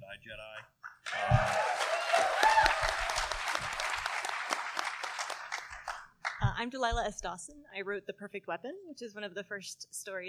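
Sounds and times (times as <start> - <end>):
audience applause: 1.0 - 6.4
speech: 6.6 - 10.2.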